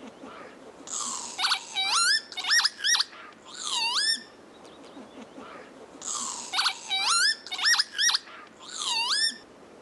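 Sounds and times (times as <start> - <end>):
northern lapwing call: 0.9 - 4.3, 6.0 - 9.4.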